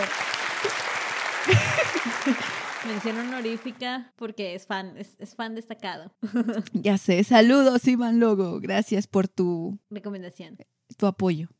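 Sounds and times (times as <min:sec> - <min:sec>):
applause: 0:00.0 - 0:03.9
laughter: 0:00.6 - 0:03.6
speech: 0:02.2 - 0:11.5.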